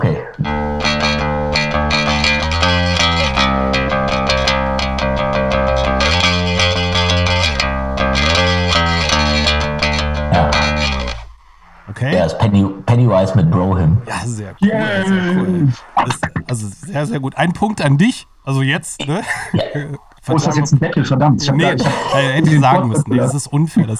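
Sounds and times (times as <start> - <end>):
bass guitar: 0.4 - 11.4, 14.1 - 16.6
speech: 12.0 - 23.9
laughter: 14.0 - 16.6, 20.4 - 23.2.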